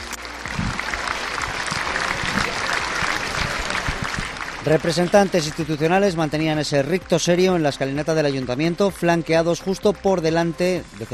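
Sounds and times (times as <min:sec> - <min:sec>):
crowd applauding: 0:00.0 - 0:08.6
speech: 0:04.6 - 0:11.1.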